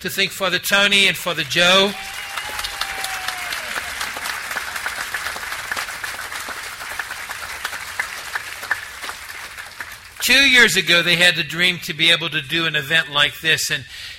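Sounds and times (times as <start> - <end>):
speech: 0.0 - 2.6, 10.3 - 14.1
applause: 1.4 - 10.6.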